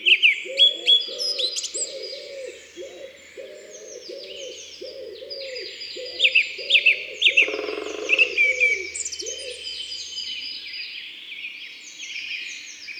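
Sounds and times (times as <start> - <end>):
songbirds twittering and whistling: 0.2 - 12.9
common wood pigeon cooing: 0.5 - 9.7.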